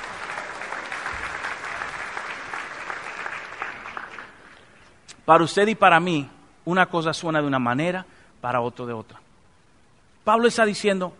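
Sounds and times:
audience applause: 0:00.0 - 0:04.8
speech: 0:05.3 - 0:09.2, 0:10.3 - 0:11.1.

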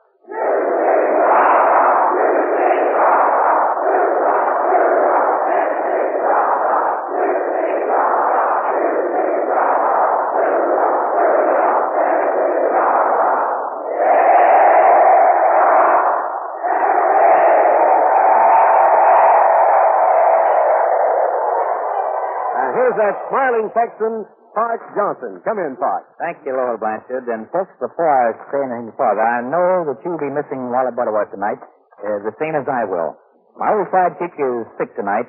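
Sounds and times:
University of Tennessee students chanting a cheer in unison: 0:00.0 - 0:25.0
speech: 0:23.1 - 0:35.2.

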